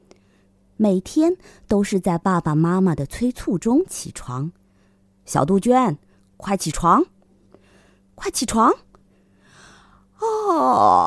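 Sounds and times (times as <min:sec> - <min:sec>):
speech: 0:00.8 - 0:04.6, 0:05.3 - 0:07.2, 0:08.2 - 0:08.9, 0:10.2 - 0:11.0
yawn: 0:09.6 - 0:11.0.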